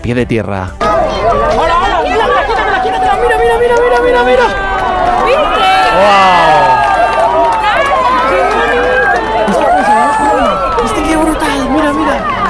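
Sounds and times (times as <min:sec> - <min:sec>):
speech: 0:00.0 - 0:02.2, 0:03.5 - 0:06.8
crowd cheering and applauding: 0:00.8 - 0:12.4.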